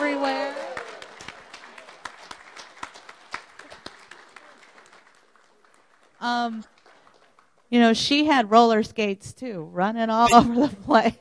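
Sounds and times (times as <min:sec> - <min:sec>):
audience applause: 0:00.0 - 0:07.7
speech: 0:06.2 - 0:06.8, 0:07.7 - 0:11.1.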